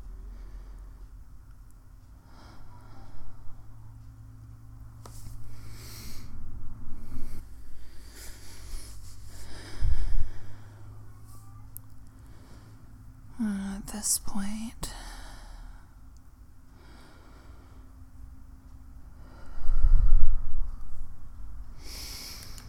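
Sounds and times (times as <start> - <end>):
person breathing: 0.1 - 1.2, 2.2 - 4.0, 5.4 - 11.2, 12.1 - 13.0, 14.9 - 16.0, 16.7 - 18.0, 19.1 - 20.6, 21.7 - 22.6
speech: 13.8 - 15.0.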